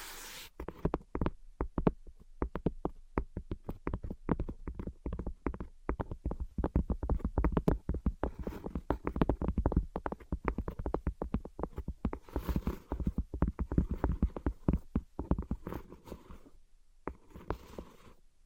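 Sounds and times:
rough scrape: 0:00.0 - 0:00.5
rapid tapping and scratching: 0:00.6 - 0:16.5.

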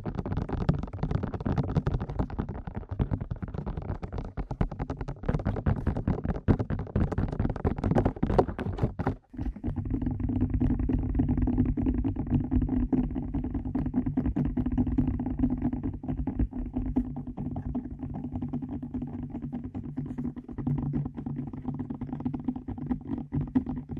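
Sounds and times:
fast ear tapping: 0:00.0 - 0:23.9.

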